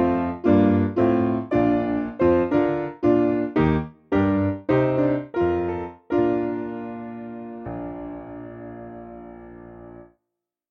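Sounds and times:
hymn on piano in B flat: 0.0 - 10.1.

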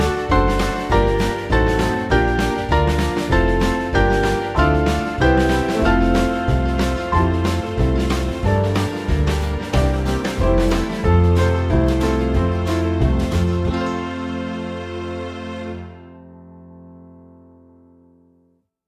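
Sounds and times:
band playing: 0.0 - 16.0.

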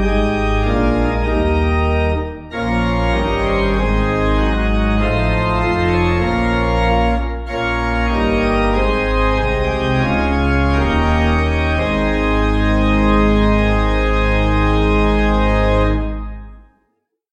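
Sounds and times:
pipe organ playing at Feniton Court: 0.0 - 16.7.

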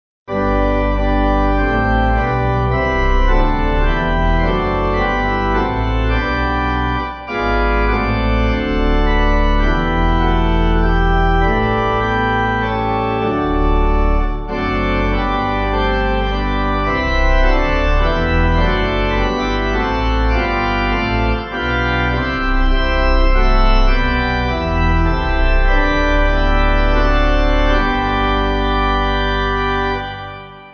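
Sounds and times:
pipe organ: 0.3 - 30.7.

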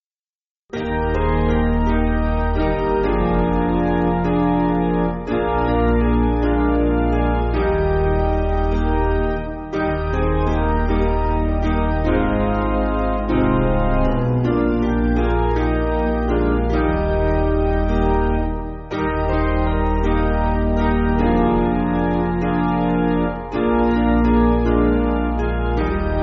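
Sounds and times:
piano backing music for churches: 0.7 - 26.2.

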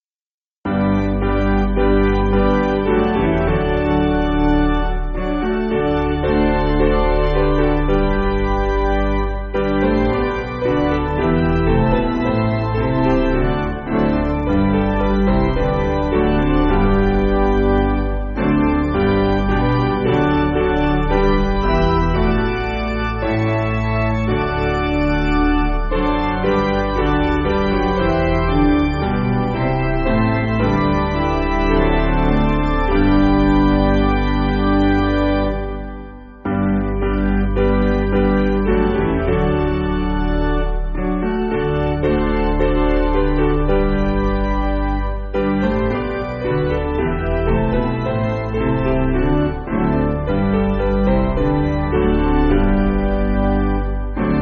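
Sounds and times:
piano: 0.6 - 54.3.

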